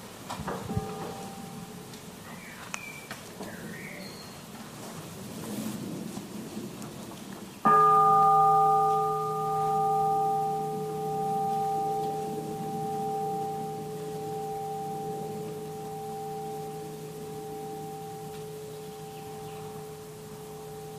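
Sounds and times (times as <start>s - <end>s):
mindfulness bell ringing: 0.6s - 2.0s, 7.7s - 20.9s.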